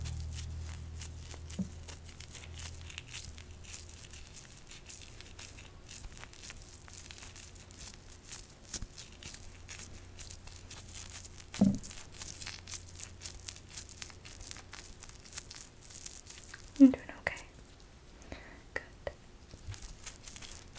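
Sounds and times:
spoolie brush scratching: 0:00.0 - 0:17.4, 0:19.5 - 0:20.7
low steady hum: 0:00.0 - 0:20.7
faint whispering: 0:16.8 - 0:17.6, 0:18.4 - 0:19.2.

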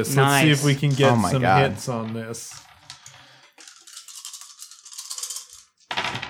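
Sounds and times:
speech: 0:00.0 - 0:02.7
dice rolling on a table: 0:01.8 - 0:06.2.

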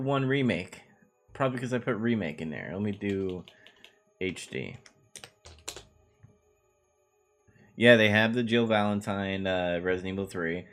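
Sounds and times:
speech: 0:00.0 - 0:00.8, 0:01.4 - 0:03.6, 0:04.2 - 0:05.3, 0:07.8 - 0:10.7
quiet computer keyboard typing of a search query: 0:02.8 - 0:05.9.

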